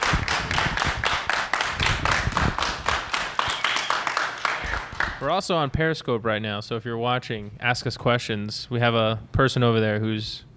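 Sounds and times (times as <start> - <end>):
audience clapping: 0.0 - 5.3
speech: 5.2 - 10.5.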